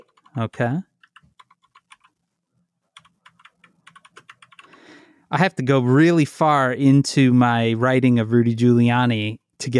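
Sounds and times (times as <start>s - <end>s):
typing on a computer keyboard to run a Google search: 0.0s - 0.4s, 1.0s - 2.2s, 3.0s - 4.8s
speech: 0.4s - 0.9s, 5.3s - 9.7s.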